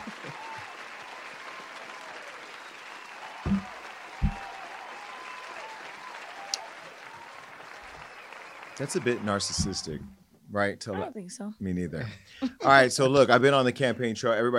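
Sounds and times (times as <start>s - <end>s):
applause: 0.0s - 10.0s
speech: 8.8s - 14.5s.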